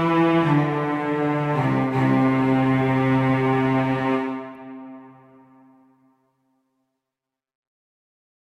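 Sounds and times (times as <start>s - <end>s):
Christmas carol music: 0.0s - 6.0s.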